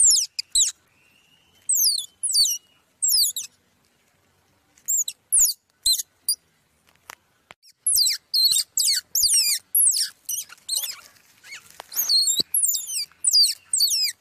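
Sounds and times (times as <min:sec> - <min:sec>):
squirrel pup squeaking: 0:00.0 - 0:00.8, 0:01.6 - 0:03.6, 0:04.8 - 0:06.4, 0:07.6 - 0:14.1.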